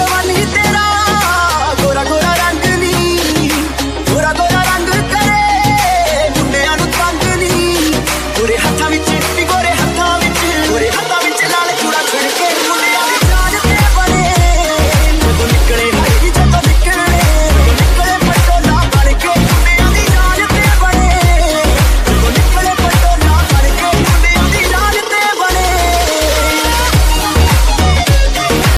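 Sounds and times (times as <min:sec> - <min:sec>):
sweet Punjabi ringtone melody: 0:00.0 - 0:28.7.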